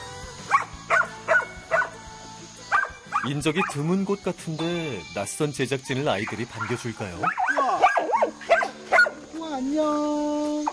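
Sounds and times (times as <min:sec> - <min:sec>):
dogs barking: 0:00.4 - 0:02.0, 0:02.7 - 0:03.9, 0:05.9 - 0:09.4
speech: 0:03.2 - 0:07.5, 0:09.7 - 0:10.4.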